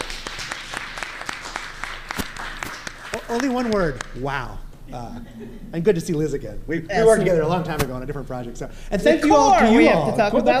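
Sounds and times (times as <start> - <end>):
audience applause: 0.0 - 4.1
speech: 3.3 - 10.5.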